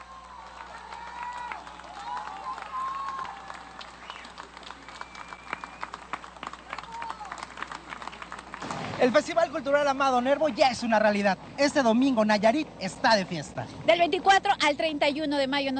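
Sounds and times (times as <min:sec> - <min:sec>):
scattered cheers: 0:00.0 - 0:08.6
audience applause: 0:00.0 - 0:10.9
high whistles: 0:04.0 - 0:06.0
speech: 0:09.0 - 0:15.7.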